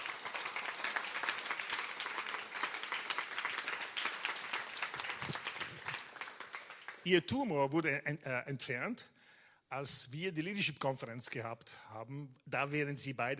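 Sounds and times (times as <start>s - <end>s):
audience applause: 0.0s - 7.1s
speech: 7.0s - 9.1s, 9.7s - 13.3s.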